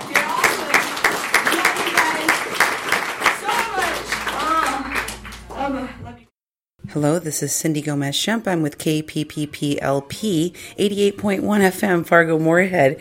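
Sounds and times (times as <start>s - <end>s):
audience applause: 0.0s - 5.7s
speech: 6.9s - 12.9s.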